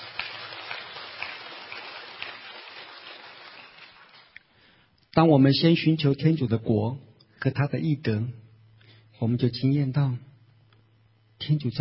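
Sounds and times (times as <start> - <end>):
audience applause: 0.0 - 4.4
speech: 5.2 - 8.4, 9.2 - 10.3, 11.4 - 11.8.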